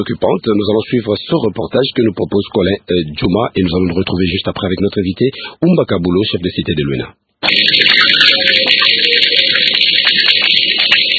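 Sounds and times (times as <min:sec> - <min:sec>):
speech: 0:00.0 - 0:08.9
water running from a tap: 0:07.4 - 0:11.1.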